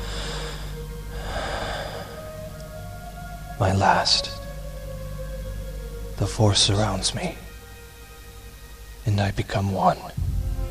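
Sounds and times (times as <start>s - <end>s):
deep breath in a dramatic Jedi scene: 0.0s - 2.5s
steady sustained musical drone: 0.0s - 10.6s
speech: 3.6s - 4.3s, 6.2s - 7.4s, 9.0s - 10.2s.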